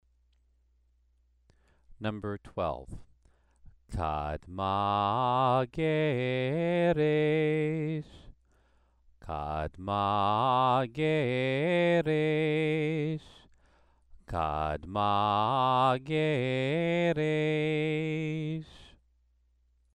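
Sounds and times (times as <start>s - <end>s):
Torah trope cantillation exercise: 3.9s - 8.2s, 9.2s - 13.4s, 14.3s - 18.9s.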